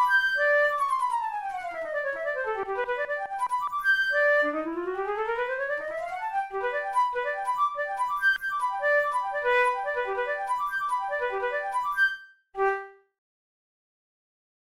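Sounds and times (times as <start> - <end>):
Boehm flute playing studies: 0.0 - 13.0.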